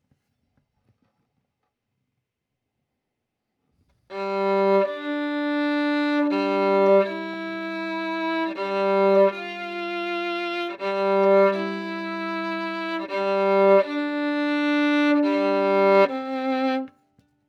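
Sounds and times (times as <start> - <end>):
violin: 4.1 - 17.0.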